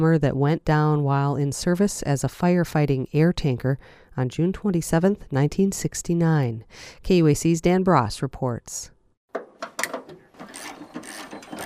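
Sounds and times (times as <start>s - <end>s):
speech: 0.0s - 9.4s
wrenches clicking: 9.6s - 11.6s
ratchet clatter: 9.7s - 11.6s.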